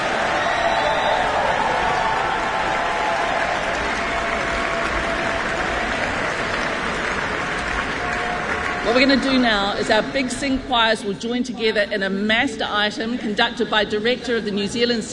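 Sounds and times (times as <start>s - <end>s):
audience applause: 0.0s - 10.2s
speech: 9.0s - 15.1s.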